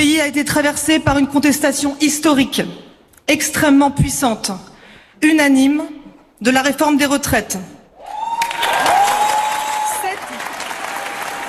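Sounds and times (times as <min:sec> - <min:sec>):
speech: 0:00.0 - 0:07.8
high sustained cheer or whistle: 0:08.0 - 0:11.4
audience applause: 0:08.1 - 0:11.4.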